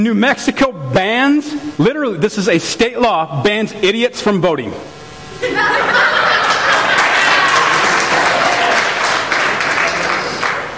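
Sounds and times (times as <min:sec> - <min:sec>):
speech: 0:00.0 - 0:06.0
laughter: 0:05.3 - 0:10.5
audience clapping: 0:06.4 - 0:10.7.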